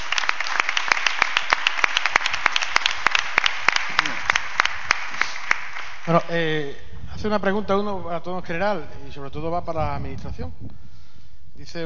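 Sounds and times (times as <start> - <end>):
audience ovation: 0.0 - 6.3
speech: 6.1 - 10.9, 11.6 - 11.8.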